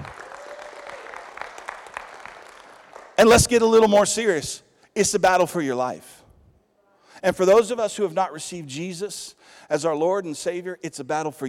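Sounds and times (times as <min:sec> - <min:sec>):
audience clapping: 0:00.0 - 0:03.8
speech: 0:03.2 - 0:06.2, 0:07.2 - 0:11.4.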